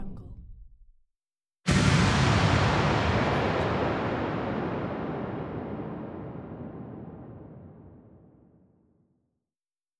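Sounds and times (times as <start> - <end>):
swoosh transitions: 1.7 - 8.4.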